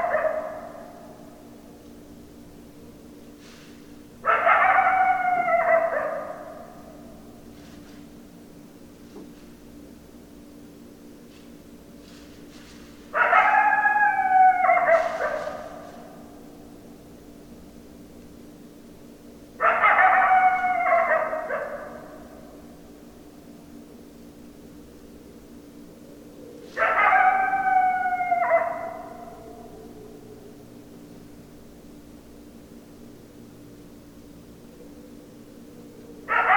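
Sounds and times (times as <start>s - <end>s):
coyotes howling: 0.0s - 1.5s, 4.2s - 7.4s, 13.1s - 16.9s, 19.6s - 22.8s, 26.0s - 31.2s, 34.5s - 36.5s.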